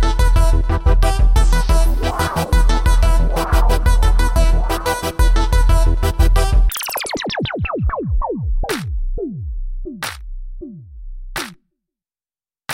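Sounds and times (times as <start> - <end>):
hip hop music: 0.1 - 9.4.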